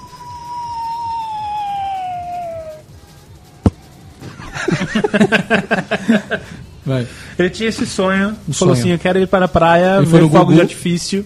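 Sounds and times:
cartoon coyote falling sound effect: 0.0 - 2.8
laughter: 4.2 - 6.6
speech: 4.7 - 11.2.

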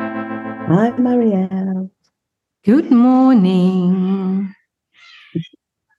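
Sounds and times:
speech: 0.7 - 1.6, 2.6 - 4.6
young cat raspy yowl during play fighting: 5.0 - 5.5
faint cat chirp: 5.0 - 5.6.

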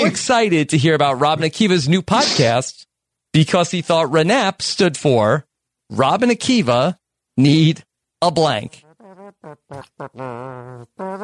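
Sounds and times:
speech: 0.0 - 8.8, 9.4 - 11.2
voice imitating a trumpet: 8.6 - 11.2.

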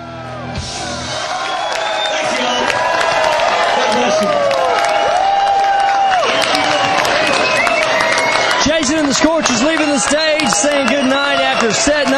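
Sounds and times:
large concert crowd cheering for an encore: 0.0 - 12.1
concert crowd scattered clapping: 1.3 - 12.1
speech: 10.0 - 12.1.

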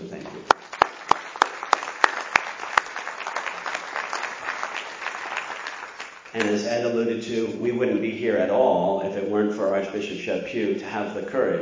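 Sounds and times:
audience applause: 0.5 - 6.5
speech: 6.4 - 11.5.

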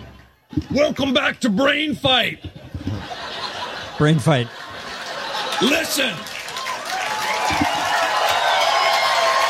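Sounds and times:
speech: 0.6 - 3.2, 4.0 - 4.6, 5.6 - 6.3
laughter: 2.2 - 6.4
crowd applauding: 4.7 - 9.4.

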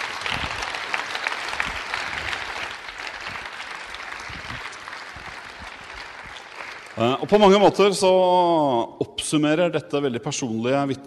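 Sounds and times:
audience applause: 0.0 - 7.8
speech: 7.0 - 11.0.

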